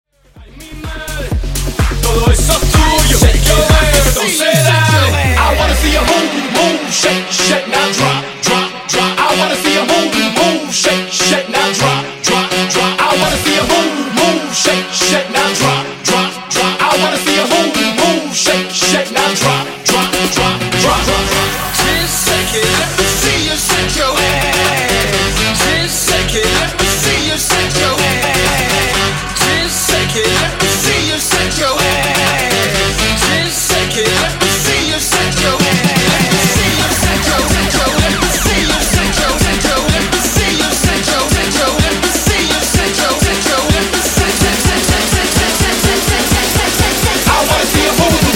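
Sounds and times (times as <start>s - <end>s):
funk bootleg: 0.2s - 48.3s.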